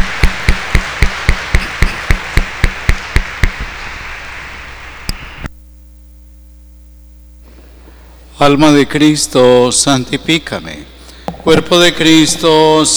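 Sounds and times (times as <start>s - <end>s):
applause: 0.0s - 4.4s
speech: 8.4s - 12.9s.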